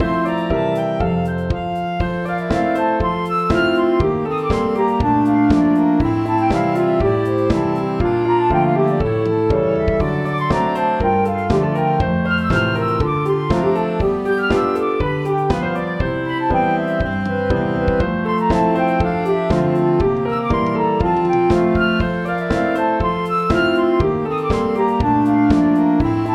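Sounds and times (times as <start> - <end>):
disco dance music: 0.0 - 26.3.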